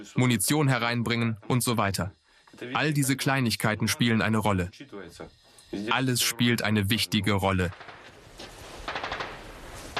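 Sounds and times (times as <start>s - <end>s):
speech: 0.0s - 8.0s
bursts of machine gun fire: 7.7s - 8.2s, 8.8s - 9.9s.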